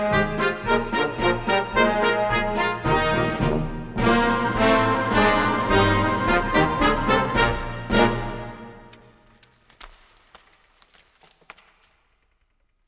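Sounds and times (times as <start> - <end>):
band playing festive tune upside down: 0.0 - 8.9.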